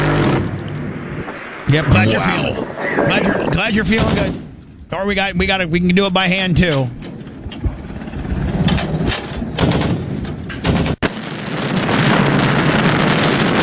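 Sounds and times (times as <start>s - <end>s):
naval artillery explosions: 0.0s - 5.6s, 6.2s - 13.6s
speech: 1.7s - 7.0s.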